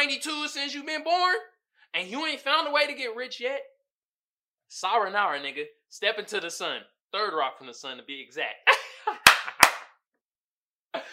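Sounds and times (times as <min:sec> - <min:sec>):
speech: 0:00.0 - 0:03.7, 0:04.7 - 0:09.3
hand clap: 0:09.2 - 0:10.0.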